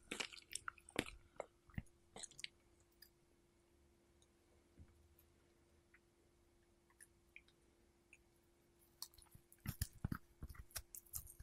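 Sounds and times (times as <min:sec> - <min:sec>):
strawberry chewing: 0:00.0 - 0:03.1, 0:09.0 - 0:11.4
faint steady hum: 0:00.0 - 0:11.4.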